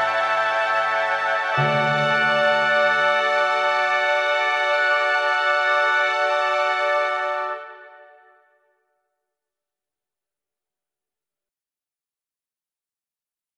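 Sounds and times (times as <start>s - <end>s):
instrumental music: 0.0s - 8.6s.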